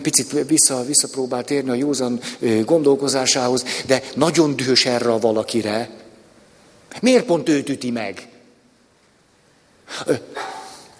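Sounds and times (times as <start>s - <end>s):
speech: 0.0s - 6.0s, 6.9s - 8.3s, 9.9s - 10.5s
sneeze: 9.9s - 10.9s.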